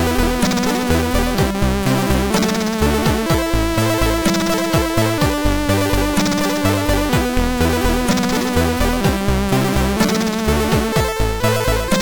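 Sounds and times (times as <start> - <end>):
melody wave on a MOS6581R4 sound chip: 0.0 - 12.0.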